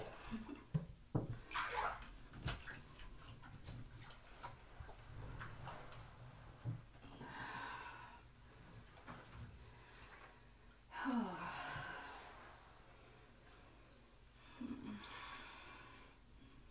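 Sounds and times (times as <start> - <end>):
low steady hum: 0.0 - 16.6
water sloshing and splashing in a bathtub: 0.0 - 16.6
soft knocks: 0.8 - 1.4.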